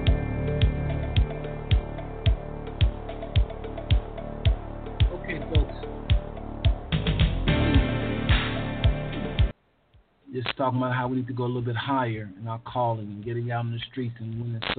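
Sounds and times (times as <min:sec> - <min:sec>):
podcast intro music with snapping beat over sustained tones: 0:00.0 - 0:09.6
speech: 0:10.6 - 0:14.7.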